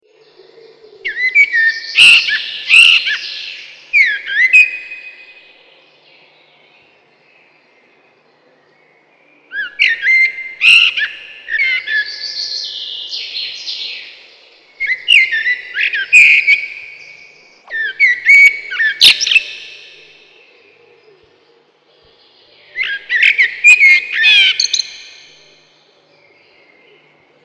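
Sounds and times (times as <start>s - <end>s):
common blackbird singing mellow fluted whistled phrases: 1.0s - 5.4s, 9.5s - 14.0s, 14.8s - 20.2s, 22.7s - 25.5s.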